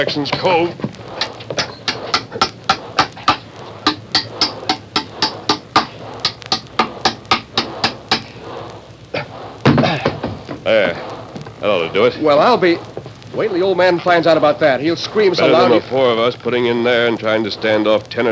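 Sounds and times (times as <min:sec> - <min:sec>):
speech: 0:00.0 - 0:00.9, 0:10.7 - 0:18.2
hammering nails into a chain on a bulkhead: 0:00.0 - 0:08.5.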